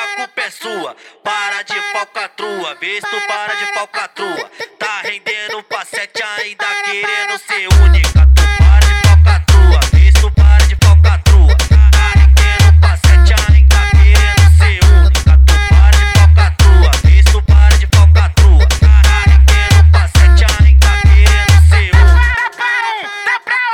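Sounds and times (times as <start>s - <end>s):
funk music: 7.7s - 22.4s.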